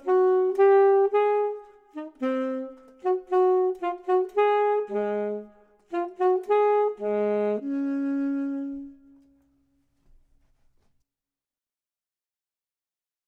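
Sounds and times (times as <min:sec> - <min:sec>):
clarinet: 0:00.0 - 0:09.6
saxophone: 0:00.0 - 0:09.6.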